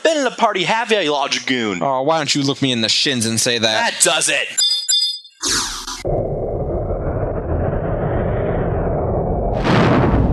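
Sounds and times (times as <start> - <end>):
speech: 0.2 - 4.8
fire whoosh and roaring flames as someone is set ablaze in an audio drama: 6.0 - 10.3.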